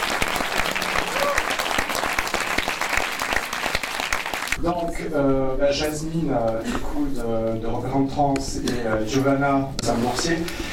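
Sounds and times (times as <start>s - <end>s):
audience applause: 0.0s - 4.6s
speech: 4.6s - 10.7s.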